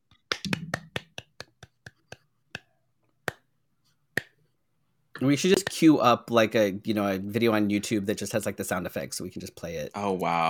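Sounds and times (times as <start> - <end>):
hand claps: 0.2 - 3.5, 4.2 - 4.4, 5.5 - 5.8
speech: 5.2 - 10.4.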